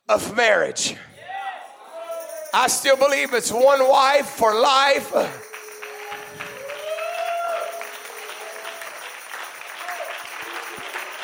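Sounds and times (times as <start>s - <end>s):
speech: 0.1s - 1.1s, 2.5s - 5.5s
audience applause: 3.0s - 11.2s
people whooping: 5.4s - 11.2s.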